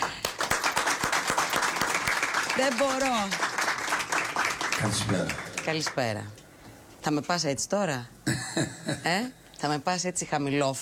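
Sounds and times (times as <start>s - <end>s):
rhythmic clapping from a Greek television audience: 0.0s - 6.2s
speech: 2.6s - 3.5s, 4.8s - 6.4s, 7.0s - 10.8s.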